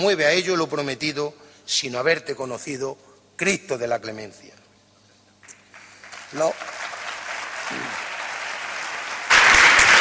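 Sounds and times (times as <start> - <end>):
speech: 0.0 - 4.6, 6.3 - 6.8, 7.7 - 8.0
audience applause: 5.5 - 9.9.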